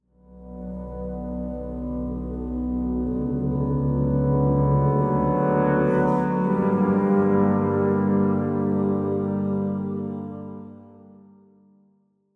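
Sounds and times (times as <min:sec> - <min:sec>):
ambient music: 0:00.1 - 0:11.4.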